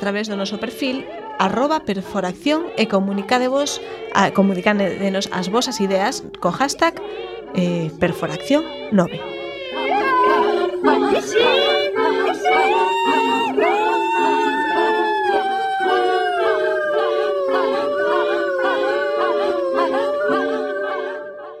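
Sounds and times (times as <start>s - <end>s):
speech: 0.0s - 9.4s
people shouting: 9.8s - 20.7s.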